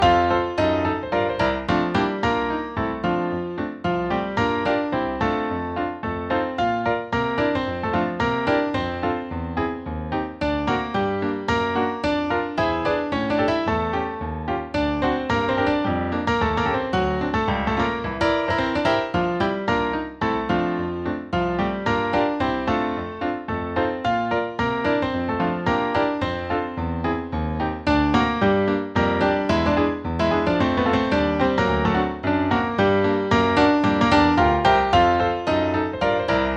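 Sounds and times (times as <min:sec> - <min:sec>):
musical accompaniment: 0:00.0 - 0:36.5.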